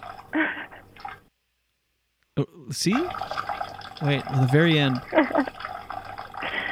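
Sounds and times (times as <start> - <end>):
urine splashing in toilet: 0.0 - 1.3, 2.8 - 6.6
speech: 2.4 - 3.4, 4.0 - 5.7.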